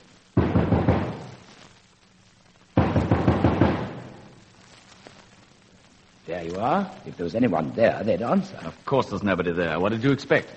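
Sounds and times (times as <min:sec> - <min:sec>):
knocking on a wall: 0:00.4 - 0:01.4, 0:02.8 - 0:04.1
speech: 0:06.4 - 0:10.5.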